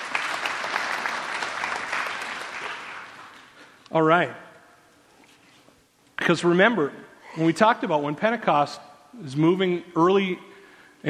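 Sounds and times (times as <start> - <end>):
audience clapping: 0.0 - 3.8
speech: 3.9 - 4.4, 6.3 - 11.0.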